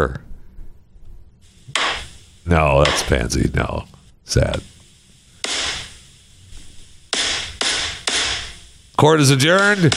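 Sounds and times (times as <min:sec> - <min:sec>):
speech: 0:00.0 - 0:00.2, 0:02.5 - 0:04.7, 0:09.0 - 0:09.9
gavel banging: 0:02.8 - 0:03.2, 0:07.1 - 0:08.6, 0:09.5 - 0:09.9.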